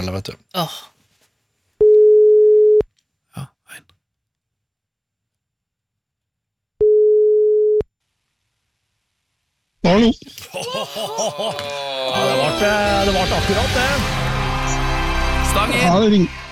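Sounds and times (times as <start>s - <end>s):
speech: 0.0s - 0.9s, 9.8s - 14.8s, 15.6s - 16.4s
telephone ringing tone during a call: 1.9s - 2.8s, 6.8s - 7.8s
laughter: 10.3s - 14.7s.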